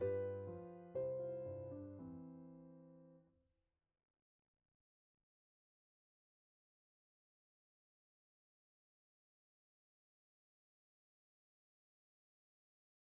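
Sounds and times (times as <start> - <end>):
piano: 0.0 - 3.3.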